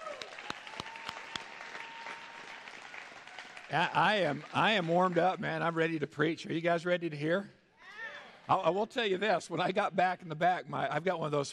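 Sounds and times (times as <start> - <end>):
audience applauding worship team: 0.0 - 6.0
speech: 3.7 - 7.6, 8.5 - 11.5.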